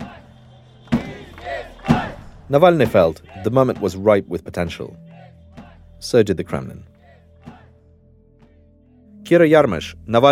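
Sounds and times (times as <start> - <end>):
street protest crowd rallying: 0.0 - 4.0, 5.0 - 5.9, 7.0 - 7.8
speech: 2.5 - 5.0, 6.0 - 6.9, 9.3 - 10.2.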